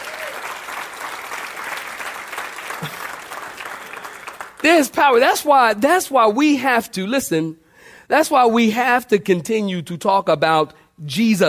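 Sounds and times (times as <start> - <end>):
crowd clapping hands: 0.0 - 5.1
speech: 2.8 - 3.0, 4.6 - 11.4.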